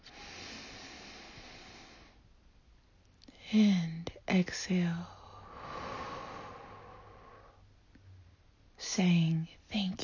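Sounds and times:
deep inhale during a guided prayer: 0.0s - 2.2s, 5.0s - 7.7s
speech: 3.5s - 5.2s, 9.0s - 10.0s.

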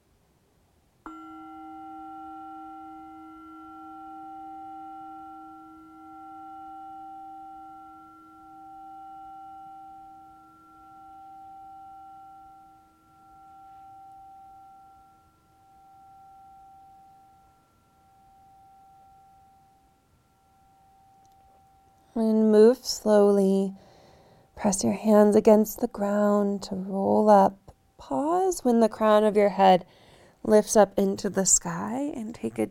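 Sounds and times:
meditation bell ringing: 1.1s - 22.4s
speech: 22.2s - 23.8s, 24.6s - 32.6s.

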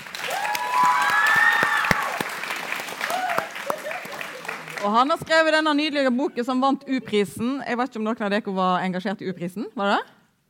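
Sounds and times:
audience applause: 0.0s - 5.0s
speech: 4.8s - 10.2s.

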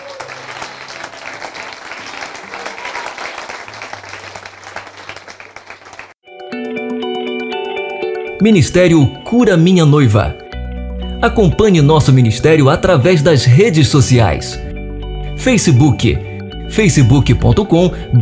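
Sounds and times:
audience applauding: 0.0s - 6.2s
speech: 8.4s - 10.4s, 11.2s - 14.6s, 15.4s - 18.1s.

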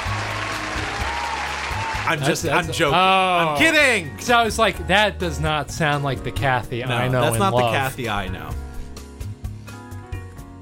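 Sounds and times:
crowd applauding: 0.0s - 2.9s
speech: 2.1s - 8.6s.

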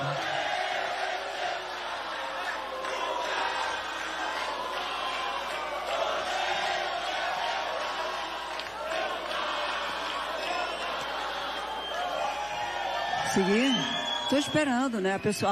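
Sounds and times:
audience shouting in protest: 0.0s - 14.4s
speech: 13.4s - 15.5s.

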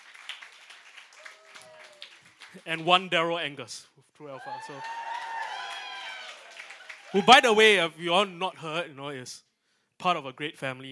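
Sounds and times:
audience clapping: 0.0s - 3.1s, 4.7s - 8.8s
speech: 2.6s - 5.1s, 7.1s - 10.9s
voices whooping and shouting: 4.4s - 7.5s.

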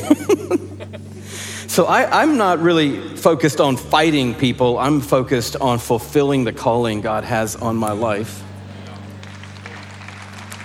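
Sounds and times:
laughter: 0.0s - 2.4s
low electrical hum: 0.0s - 10.6s
speech: 1.8s - 8.4s
audience clapping: 7.8s - 10.6s.

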